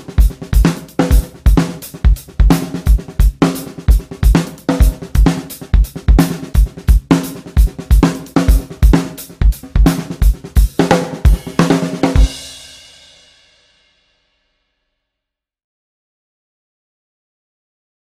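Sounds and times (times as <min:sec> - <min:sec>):
drums playing a rhythm: 0:00.0 - 0:13.8.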